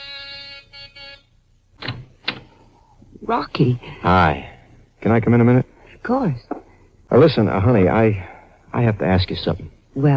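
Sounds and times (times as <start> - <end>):
buzzing doorbell: 0.0 - 1.4
speech: 3.2 - 6.5, 7.1 - 10.1.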